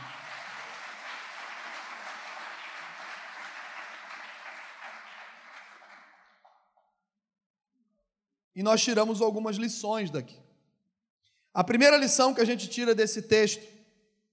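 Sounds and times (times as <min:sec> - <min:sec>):
crowd applause: 0:00.0 - 0:06.6
speech: 0:08.6 - 0:10.5, 0:11.6 - 0:13.8.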